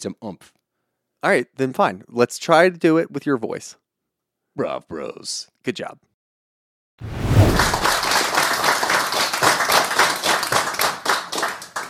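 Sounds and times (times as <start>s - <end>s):
speech: 0.0s - 0.6s, 1.2s - 3.8s, 4.6s - 6.1s, 7.0s - 7.8s
clapping in a video: 7.6s - 11.8s.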